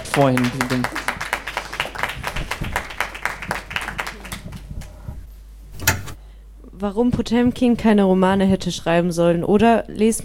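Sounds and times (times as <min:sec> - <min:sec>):
audience applause: 0:00.0 - 0:05.0
speech: 0:00.2 - 0:01.1, 0:06.8 - 0:10.2.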